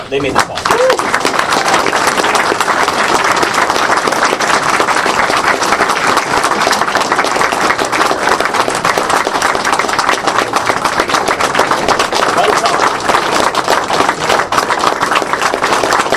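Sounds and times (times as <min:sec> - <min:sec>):
speech: 0:00.1 - 0:01.0
audience round of applause: 0:00.2 - 0:16.1.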